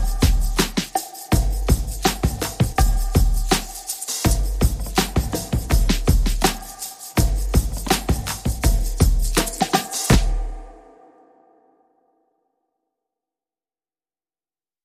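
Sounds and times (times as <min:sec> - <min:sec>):
percussion: 0:00.0 - 0:11.4.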